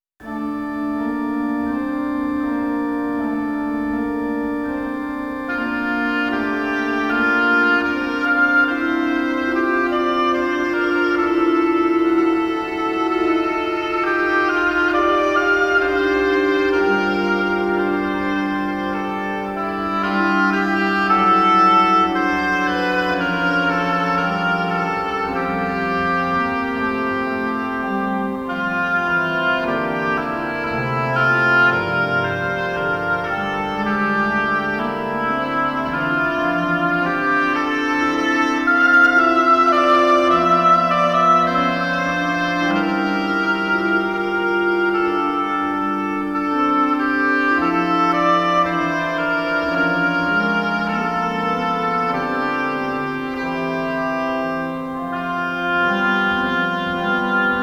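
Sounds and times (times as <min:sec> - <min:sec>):
oboe playing variations: 0:00.2 - 0:57.6.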